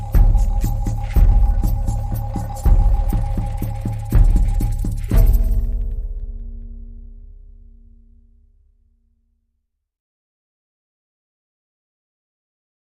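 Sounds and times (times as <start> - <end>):
slow savannah rhythm: 0.0 - 8.6.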